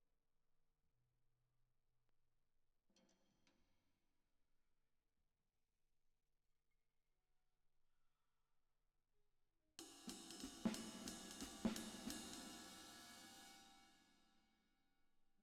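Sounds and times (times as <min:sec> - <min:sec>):
drums with reverb: 0:09.8 - 0:14.2.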